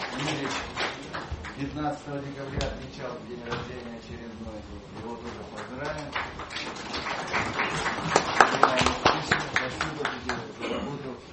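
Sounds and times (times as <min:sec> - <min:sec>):
crowd applauding: 0:00.0 - 0:01.9, 0:05.2 - 0:10.6
speech: 0:00.2 - 0:00.8, 0:01.6 - 0:11.3.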